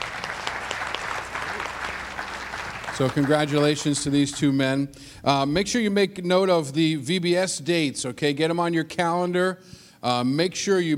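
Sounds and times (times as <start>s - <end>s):
church congregation applauding a pastor's 40 years of ordination: 0.0s - 4.6s
speech: 3.0s - 10.9s.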